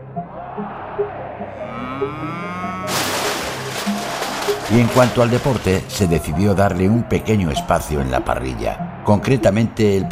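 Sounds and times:
speech: 0:00.6 - 0:03.0, 0:04.5 - 0:10.0
bull mooing in a radio studio: 0:01.5 - 0:03.0.

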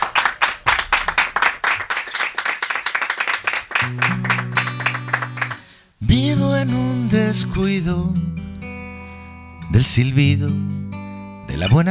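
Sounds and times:
studio audience applause: 0:00.0 - 0:05.7
speech: 0:03.9 - 0:04.5, 0:06.0 - 0:08.3, 0:09.8 - 0:10.8, 0:11.6 - 0:11.9.

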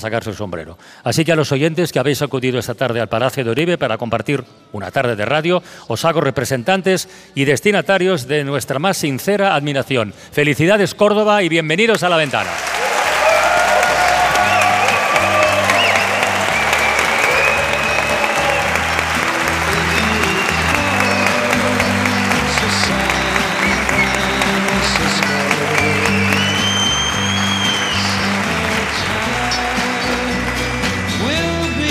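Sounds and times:
speech: 0:00.0 - 0:12.8
cheering: 0:12.2 - 0:31.7
audience applause: 0:12.2 - 0:31.8.

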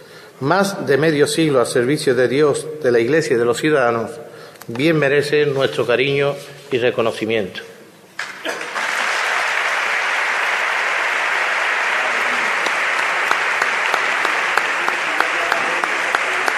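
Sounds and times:
speech: 0:00.4 - 0:07.7
audience ovation applause: 0:08.2 - 0:16.5.

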